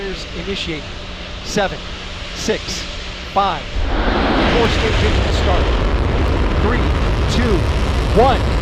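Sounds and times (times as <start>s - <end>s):
speech: 0.2s - 5.9s, 6.6s - 8.6s
rocket launch liftoff roar of Artemis 1: 3.7s - 8.6s.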